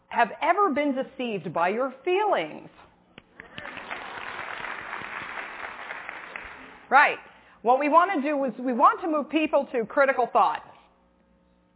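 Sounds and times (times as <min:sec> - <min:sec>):
speech: 0:00.1 - 0:02.9, 0:06.9 - 0:10.7
crowd applauding: 0:03.4 - 0:06.9.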